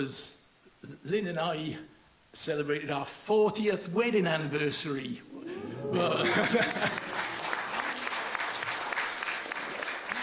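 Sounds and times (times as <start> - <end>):
speech: 0.0 - 7.2
laughter: 5.4 - 8.1
audience clapping: 6.0 - 10.2.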